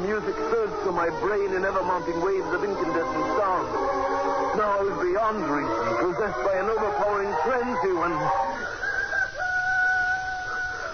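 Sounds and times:
speech: 0.1s - 8.6s
rooster crowing: 2.6s - 10.9s.

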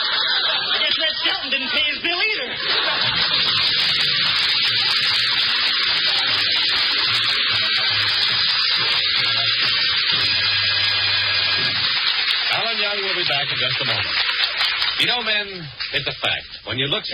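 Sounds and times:
laughter: 0.0s - 9.7s
hot water running from a tap: 2.8s - 16.2s
speech: 15.0s - 17.1s.

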